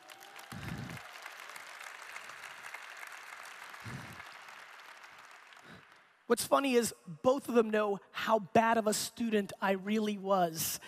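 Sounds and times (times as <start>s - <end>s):
audience applause: 0.0s - 6.1s
speech: 6.3s - 10.8s.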